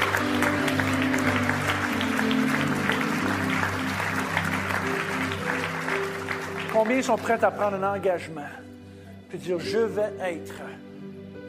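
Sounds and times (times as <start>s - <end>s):
audience applause: 0.0s - 7.6s
speech: 6.8s - 8.7s, 9.3s - 10.9s.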